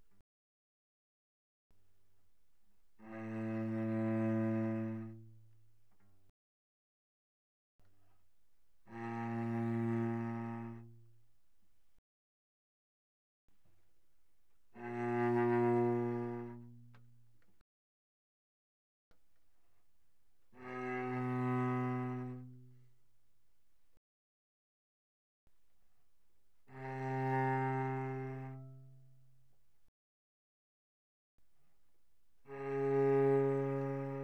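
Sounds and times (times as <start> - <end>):
cello played arco pianissimo on the C string: 2.9 - 6.2, 8.8 - 11.3, 14.7 - 17.6, 20.5 - 23.0, 26.6 - 29.4, 32.4 - 34.2.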